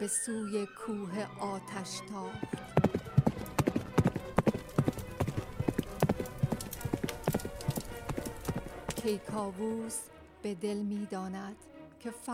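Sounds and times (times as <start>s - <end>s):
speech: 0.0s - 3.0s, 9.0s - 12.3s
horse hooves galloping: 2.3s - 9.6s.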